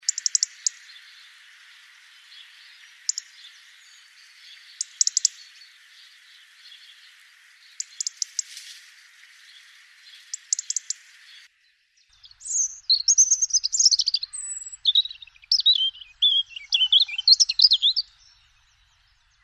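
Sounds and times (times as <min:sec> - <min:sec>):
European robin song: 0:12.4 - 0:18.0.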